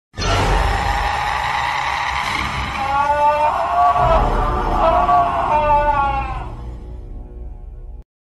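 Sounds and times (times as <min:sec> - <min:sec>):
person screaming: 0:00.2 - 0:06.7.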